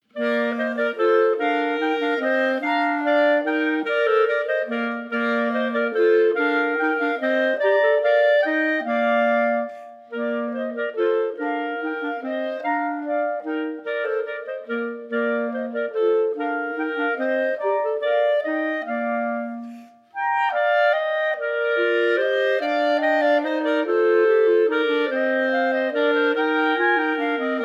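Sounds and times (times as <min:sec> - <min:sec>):
minuet played by three clarinets: 0:00.0 - 0:27.6.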